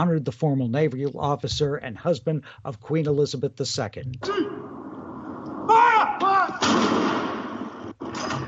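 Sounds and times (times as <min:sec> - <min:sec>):
speech: 0:00.0 - 0:04.5
cannon gun salute firing: 0:05.6 - 0:08.4.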